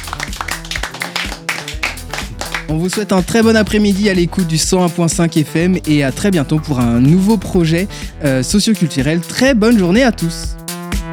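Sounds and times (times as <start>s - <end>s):
audience applause: 0.0s - 3.9s
speech: 2.7s - 10.6s.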